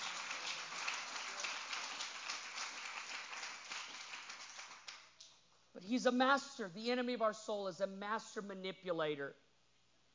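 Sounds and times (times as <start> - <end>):
audience clapping hands: 0.0 - 5.4
speech: 5.8 - 9.4.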